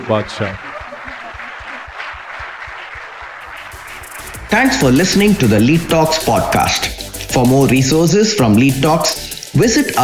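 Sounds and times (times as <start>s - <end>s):
speech: 0.0s - 0.7s, 4.5s - 10.0s
laughter: 0.0s - 2.7s
crowd applauding: 0.0s - 10.0s
low rhythmic thump: 3.4s - 9.6s.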